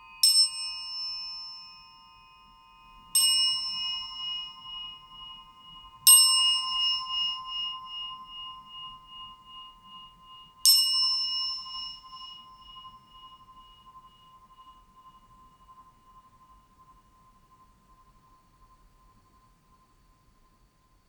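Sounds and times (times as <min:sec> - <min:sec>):
orin singing bowl struck in a temple hall: 0:00.0 - 0:14.9.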